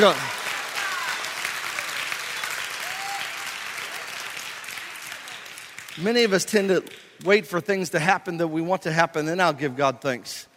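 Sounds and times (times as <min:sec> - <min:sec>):
speech: 0:00.0 - 0:00.3, 0:06.0 - 0:10.5
audience clapping hands: 0:00.0 - 0:07.3.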